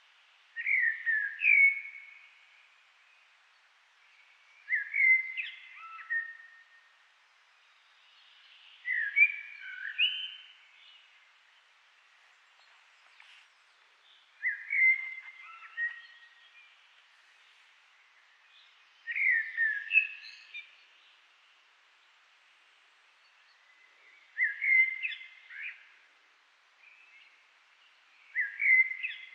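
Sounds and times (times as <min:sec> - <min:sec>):
Eurasian blackbird song: 0:00.6 - 0:02.2, 0:04.5 - 0:06.7, 0:08.0 - 0:11.0, 0:14.0 - 0:16.8, 0:18.4 - 0:21.0, 0:23.5 - 0:26.0, 0:28.1 - 0:29.3.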